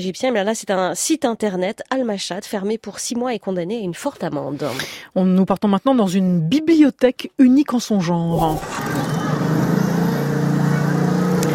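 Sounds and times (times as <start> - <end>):
speech: 0.0 - 9.2
traffic noise under a highway bridge: 8.4 - 11.5.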